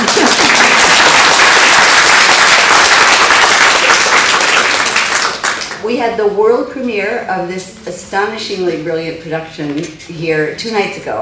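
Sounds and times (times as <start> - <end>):
audience applause: 0.0 - 5.8
speech: 6.2 - 11.2.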